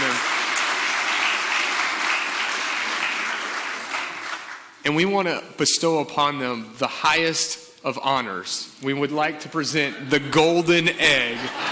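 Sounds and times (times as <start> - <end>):
audience applause: 0.0 - 4.7
speech: 4.9 - 11.7
laughter: 11.0 - 11.7.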